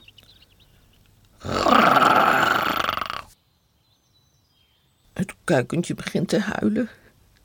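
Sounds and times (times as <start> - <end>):
dog growling: 1.4 - 3.3
speech: 5.5 - 7.0.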